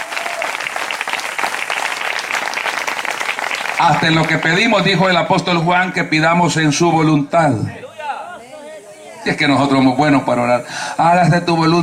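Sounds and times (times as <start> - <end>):
audience applauding: 0.0 - 5.4
speech: 3.8 - 7.9, 9.2 - 11.8.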